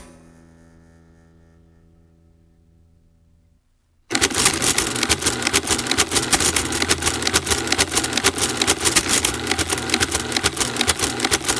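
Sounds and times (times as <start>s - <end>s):
Remington Rand adding machine: 4.1s - 11.5s.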